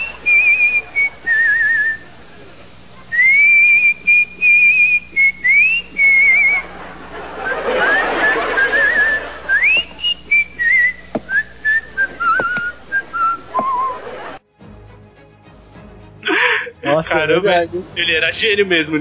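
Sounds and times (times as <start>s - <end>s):
person whistling a wandering melodic tune: 0.0s - 2.0s, 3.1s - 6.7s, 7.4s - 14.0s
laughter: 0.0s - 14.4s, 16.2s - 17.4s
speech: 17.2s - 18.9s.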